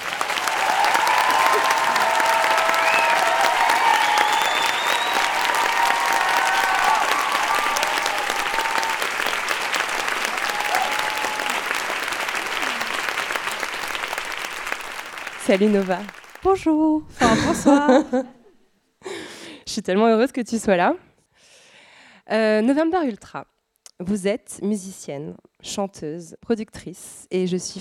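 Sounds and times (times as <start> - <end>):
crowd applauding: 0.0 - 16.5
whoops and cheers: 0.2 - 13.6
speech: 15.5 - 18.4, 19.8 - 21.1, 22.3 - 27.7.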